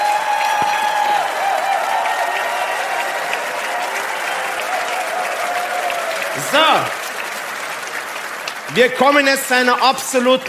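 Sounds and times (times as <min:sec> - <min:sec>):
large audience applauding: 0:00.0 - 0:10.4
speech: 0:06.6 - 0:07.0, 0:08.7 - 0:10.4.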